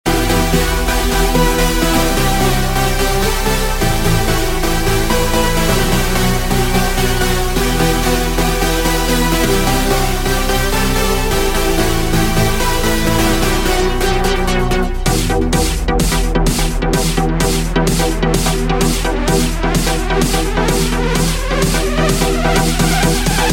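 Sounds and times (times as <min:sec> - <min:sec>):
electronic dance music: 0:00.0 - 0:23.5.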